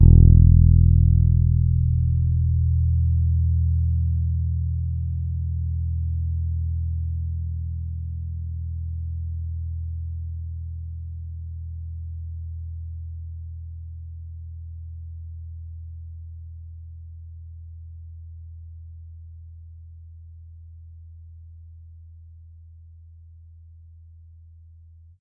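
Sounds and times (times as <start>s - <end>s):
Pedulla Thunderbass bass guitar playing a soft E2 note: 0.0s - 7.4s.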